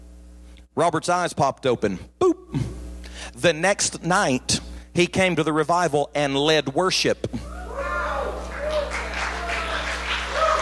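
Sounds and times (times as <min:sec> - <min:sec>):
speech: 0:00.8 - 0:02.4, 0:03.4 - 0:07.4
audience clapping: 0:08.0 - 0:10.6.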